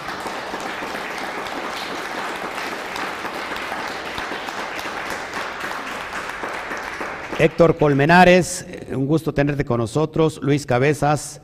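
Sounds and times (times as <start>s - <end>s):
audience applause: 0.0s - 8.1s
speech: 7.4s - 11.4s.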